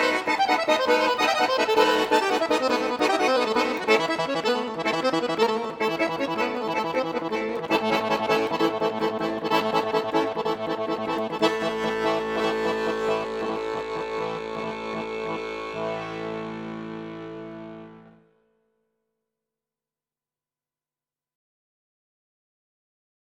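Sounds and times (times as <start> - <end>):
Bulgarian folk dance music: 0.0 - 18.2.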